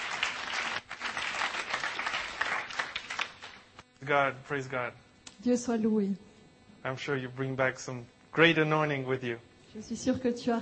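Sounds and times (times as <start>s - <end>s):
audience applauding: 0.0s - 3.8s
speech: 4.1s - 10.5s.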